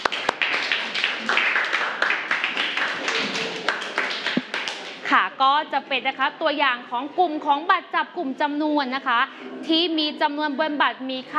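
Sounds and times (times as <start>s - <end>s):
class applauding a group: 0.0s - 5.1s
speech: 5.6s - 11.3s.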